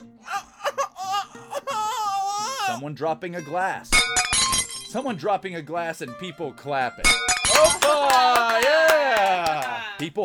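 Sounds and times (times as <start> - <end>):
baby crying: 0.0 - 2.8
speech: 2.8 - 4.1, 4.9 - 10.2.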